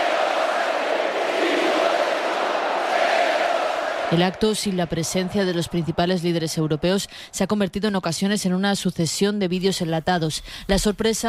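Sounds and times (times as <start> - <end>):
political rally audience chanting: 0.0 - 7.0
speech: 4.1 - 11.2.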